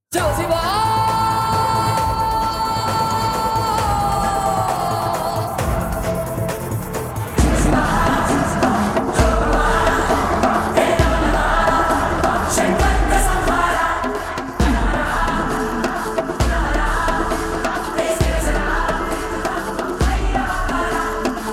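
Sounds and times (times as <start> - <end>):
trailer background music mix: 0.2 - 21.5.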